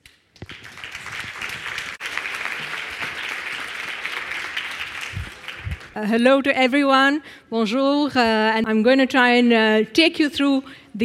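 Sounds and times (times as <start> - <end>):
audience applause welcoming a speaker: 0.4 - 6.0
speech: 6.0 - 11.0.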